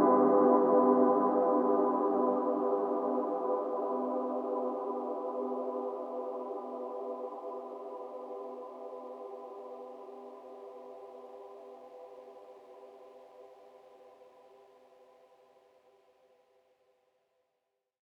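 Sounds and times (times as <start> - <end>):
Casio MT520 keyboard with hall reverb: 0.0 - 10.2.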